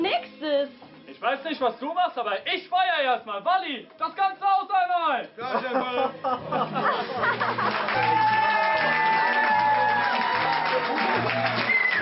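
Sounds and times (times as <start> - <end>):
speech: 0.1 - 8.5
laughter: 5.4 - 11.7
audience cheering and applause, standing ovation: 7.2 - 11.9.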